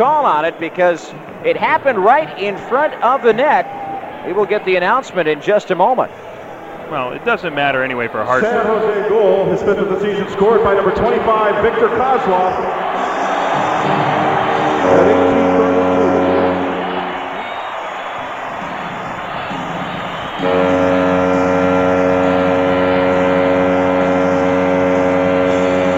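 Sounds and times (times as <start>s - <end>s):
speech: 0.0s - 6.2s, 6.9s - 12.8s
Sharks fans cheering in arena: 0.0s - 25.9s
arena foghorn blasts: 12.8s - 17.9s, 19.5s - 25.9s.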